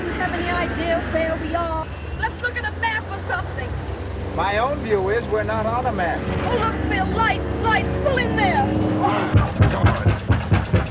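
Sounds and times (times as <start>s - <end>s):
faint murmur: 0.0s - 10.8s
speech: 0.3s - 10.3s
heavy knocking on a door: 9.3s - 10.8s.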